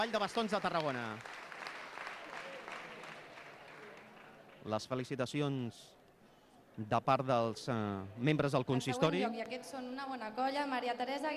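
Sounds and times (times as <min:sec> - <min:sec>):
speech: 0:00.0 - 0:01.4, 0:04.6 - 0:06.0, 0:06.8 - 0:11.3
applause: 0:00.0 - 0:04.9.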